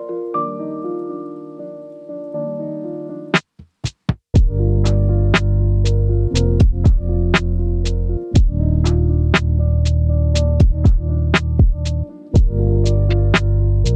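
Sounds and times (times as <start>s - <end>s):
lofi hip hop: 4.4s - 13.9s.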